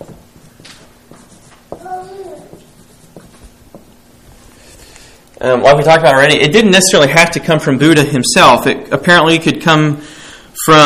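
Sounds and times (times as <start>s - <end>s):
writing on a board: 0.0s - 3.9s
speech: 5.4s - 10.8s.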